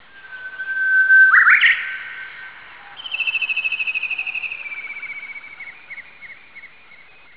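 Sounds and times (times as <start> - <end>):
uguisu: 0.0 - 7.3.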